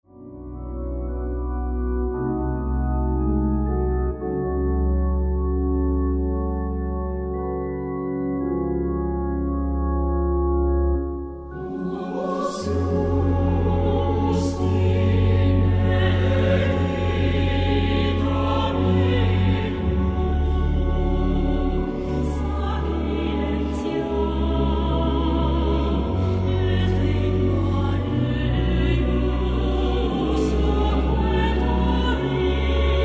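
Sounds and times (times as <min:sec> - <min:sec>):
organ: 0:00.1 - 0:33.0.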